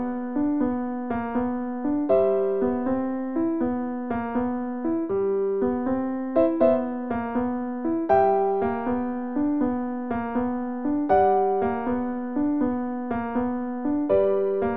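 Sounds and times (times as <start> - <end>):
piano piece: 0.0 - 14.7.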